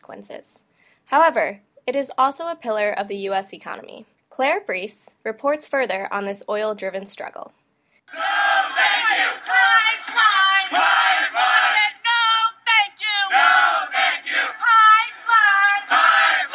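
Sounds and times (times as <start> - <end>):
speech: 0.1 - 8.4
activists chanting in unison protesting the Keystone XL pipeline: 8.1 - 16.5.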